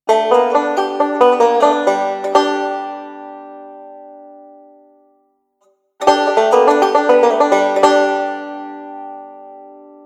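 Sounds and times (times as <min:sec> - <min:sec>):
banjo: 0:00.0 - 0:05.0, 0:06.0 - 0:10.0.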